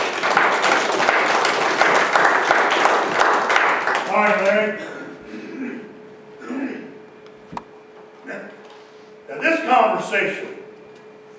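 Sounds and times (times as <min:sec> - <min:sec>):
audience applause: 0:00.0 - 0:04.8
speech: 0:10.1 - 0:10.5.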